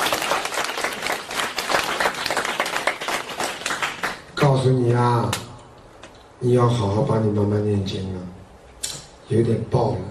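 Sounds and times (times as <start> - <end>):
audience applause at a talk: 0.0 - 4.3
speech: 4.5 - 5.4, 6.4 - 8.4, 9.3 - 10.0.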